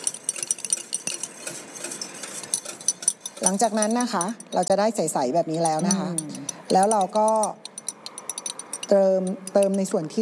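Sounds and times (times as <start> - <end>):
spoon clinking and scraping against a container while stirring a mixture: 0.0 - 10.1
speech: 3.4 - 7.6, 8.9 - 10.1.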